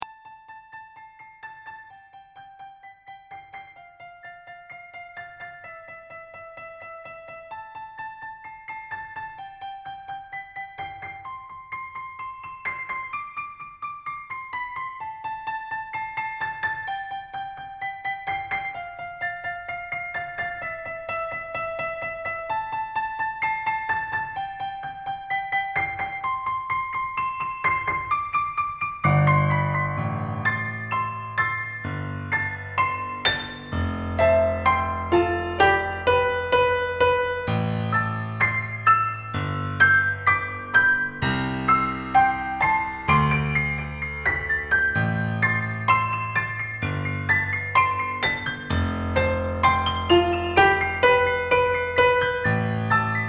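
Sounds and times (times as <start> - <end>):
piano concerto: 0.0 - 53.2.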